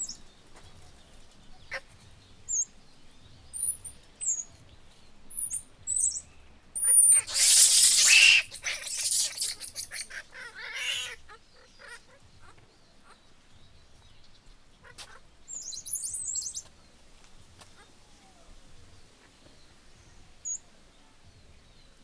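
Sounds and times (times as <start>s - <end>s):
Bolivian squirrel monkey calls at a zoo: 6.8s - 13.2s, 15.0s - 16.6s.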